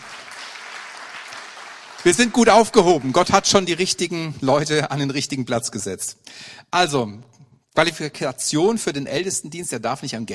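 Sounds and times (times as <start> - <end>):
audience clapping: 0.0 - 4.0
speech: 2.0 - 10.3.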